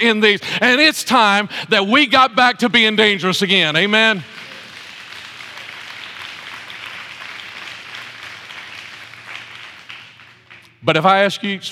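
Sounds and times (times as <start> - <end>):
speech: 0.0 - 4.5, 10.8 - 11.6
audience applause: 4.1 - 10.7.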